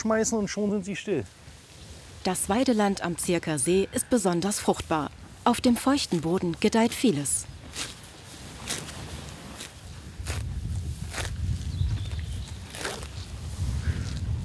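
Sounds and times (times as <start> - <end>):
speech: 0.0 - 1.5, 2.2 - 7.9
cows tearing off grass while grazing: 7.5 - 14.4.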